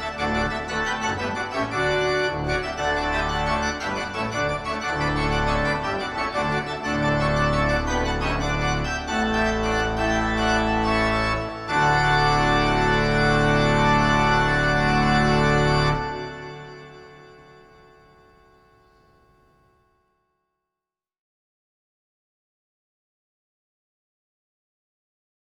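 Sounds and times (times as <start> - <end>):
rondo on a home organ: 0.0 - 19.4.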